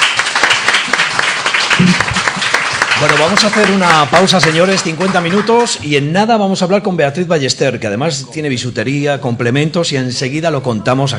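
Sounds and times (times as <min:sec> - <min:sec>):
studio applause on a Spanish morning radio show: 0:00.0 - 0:05.9
speech: 0:03.0 - 0:11.1.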